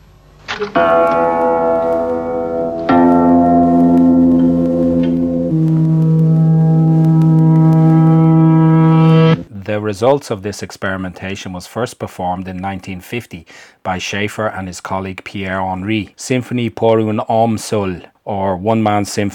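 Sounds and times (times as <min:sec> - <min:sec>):
speech: 0:00.6 - 0:01.7, 0:09.8 - 0:19.3
reversed tape note spliced into a sequence: 0:00.6 - 0:09.5.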